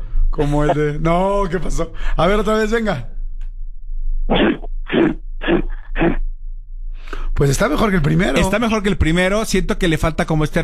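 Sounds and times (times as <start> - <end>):
steady low hum: 0.0 - 10.2
speech: 0.4 - 3.1, 4.3 - 4.5, 7.4 - 10.6
voice imitating a grizzly bear: 4.3 - 6.2.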